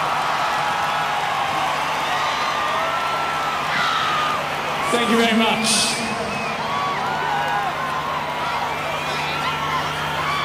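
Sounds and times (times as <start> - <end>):
live concert crowd screaming: 0.0 - 10.4
speech: 4.9 - 6.0
steady low hum: 4.9 - 10.4.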